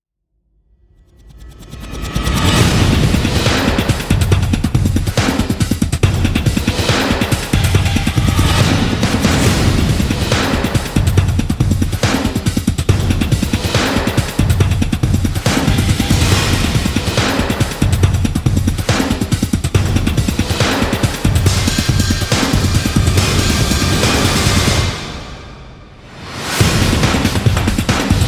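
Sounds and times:
remix drums: 1.8s - 25.3s, 26.3s - 28.2s.

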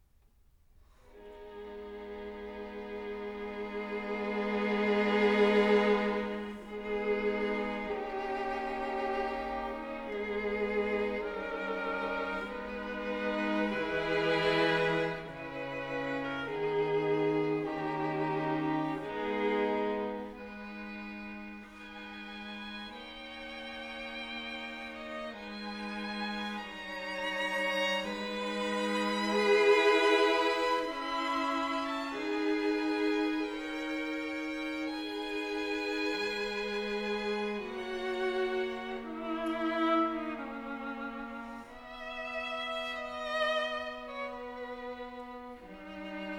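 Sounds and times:
quartet adagio in C-sharp minor: 0.8s - 46.3s.

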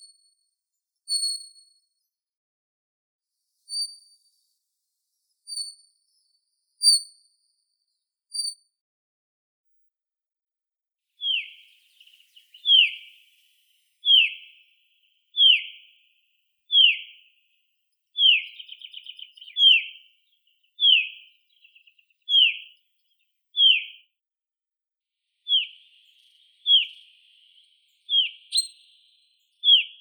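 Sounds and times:
Fringilla coelebs chaffinch singing: 11.2s - 14.6s, 15.4s - 15.9s, 16.7s - 17.3s, 18.2s - 22.8s, 23.6s - 24.0s, 25.5s - 29.9s.

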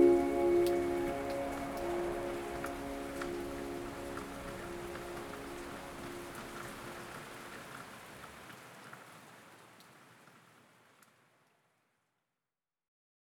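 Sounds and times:
piano: 0.0s - 7.0s
rain: 0.0s - 12.0s.

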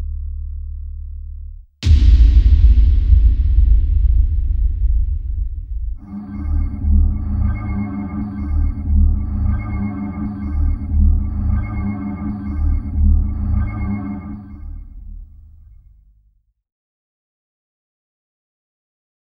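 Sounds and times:
big bang explosion: 1.8s - 15.7s.

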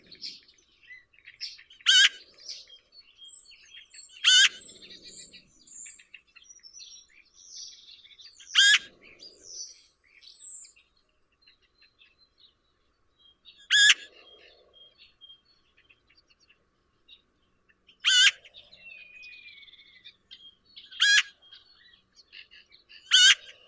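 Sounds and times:
Eurasian magpie Pica pica calling: 1.9s - 2.3s, 4.0s - 6.0s, 8.4s - 9.0s, 13.7s - 14.1s, 18.0s - 18.5s, 20.9s - 21.4s, 23.0s - 23.6s.

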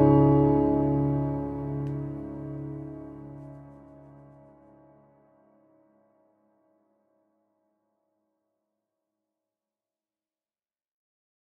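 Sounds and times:
fingerstyle guitar: 0.0s - 4.6s.

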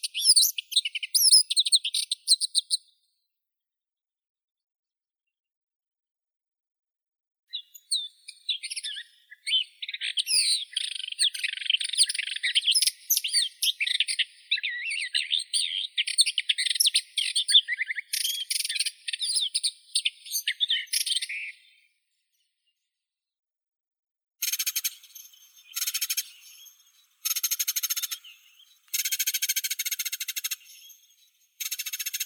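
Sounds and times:
Menetries's warbler Sylvia mystacea singing: 0.0s - 2.8s, 7.5s - 21.8s, 24.4s - 32.2s.

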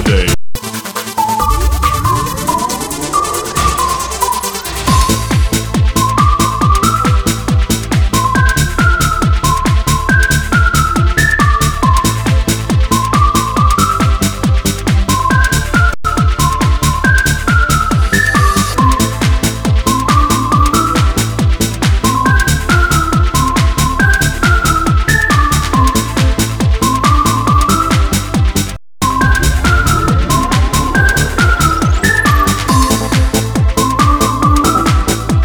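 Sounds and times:
whistled tune: 1.0s - 35.4s.

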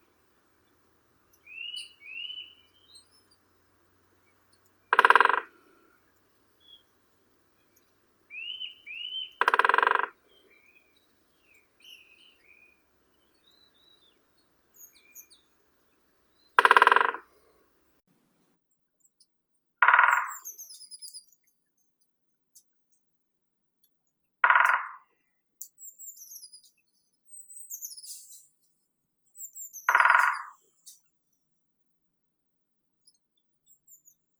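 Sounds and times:
great spotted woodpecker Dendrocopos major: 0.7s - 17.6s, 19.8s - 21.4s, 24.4s - 28.4s, 29.4s - 31.0s.

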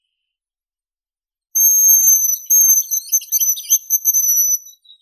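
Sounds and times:
hazel grouse Bonasa bonasia calling: 1.6s - 4.7s.

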